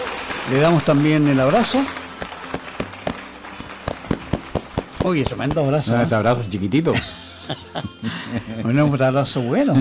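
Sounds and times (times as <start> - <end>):
sparse hand claps: 0.0 - 5.8
speech: 0.5 - 2.0, 5.0 - 9.7
laughter: 6.9 - 9.7.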